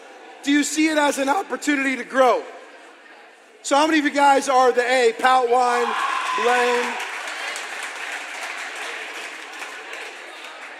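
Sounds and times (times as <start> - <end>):
speech: 0.4 - 2.6, 3.6 - 7.0
audience applauding: 6.0 - 10.7.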